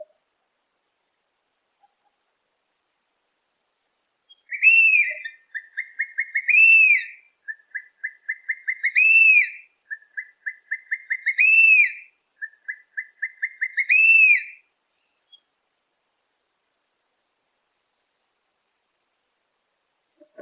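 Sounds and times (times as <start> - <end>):
harpy eagle calling: 4.3 - 14.6.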